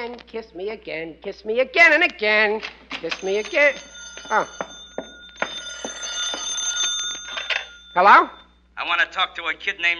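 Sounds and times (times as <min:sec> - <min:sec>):
speech: 0:00.0 - 0:04.7, 0:08.0 - 0:09.9
telephone bell ringing: 0:03.1 - 0:08.5.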